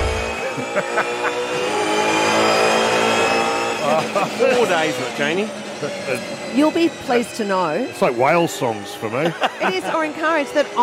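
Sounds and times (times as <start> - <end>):
race cars revving on TV broadcast: 0.0 - 10.8
laughter: 0.3 - 1.8, 3.8 - 6.3, 9.0 - 10.6
speech: 0.6 - 2.5, 3.9 - 10.8.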